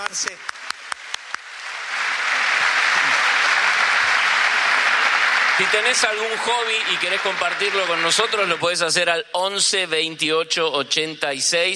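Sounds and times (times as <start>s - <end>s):
audience applause: 0.0s - 9.1s
speech: 0.1s - 0.5s, 5.6s - 11.7s.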